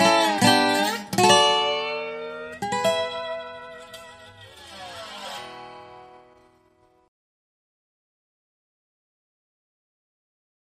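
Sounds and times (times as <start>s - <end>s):
bottleneck slide guitar solo: 0.0s - 6.8s.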